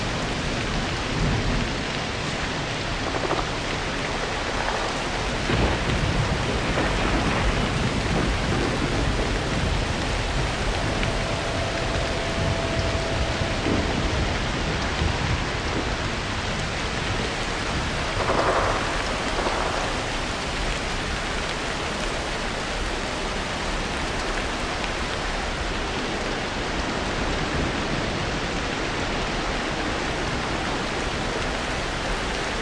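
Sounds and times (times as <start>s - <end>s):
rain on a farm: 0.0s - 32.5s.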